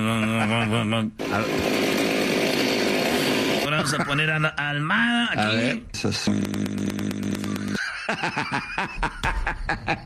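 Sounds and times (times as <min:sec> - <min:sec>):
laughter: 0:00.0 - 0:01.5, 0:03.6 - 0:04.6, 0:07.4 - 0:10.0
speech: 0:00.4 - 0:02.0, 0:03.8 - 0:10.0
chainsaw running: 0:01.2 - 0:03.7, 0:06.3 - 0:07.8.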